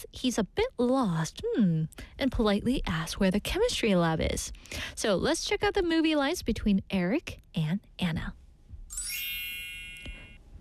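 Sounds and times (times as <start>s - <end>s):
speech: 0.1s - 8.4s
mobile phone electronic chime: 8.9s - 10.4s.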